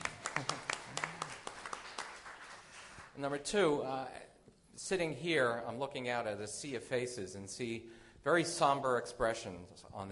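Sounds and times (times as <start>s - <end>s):
light audience applause: 0.0s - 3.2s
speech: 3.2s - 10.1s.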